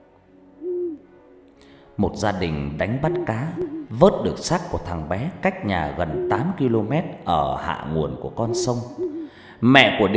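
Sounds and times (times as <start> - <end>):
owl hooting mournfully at night: 0.6 - 1.0, 2.8 - 4.5, 5.8 - 6.9, 8.3 - 9.5
speech: 2.0 - 10.1.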